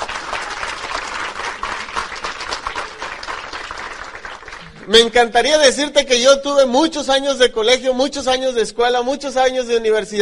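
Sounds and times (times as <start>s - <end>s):
large audience applause: 0.0s - 4.9s
speech: 4.9s - 10.2s.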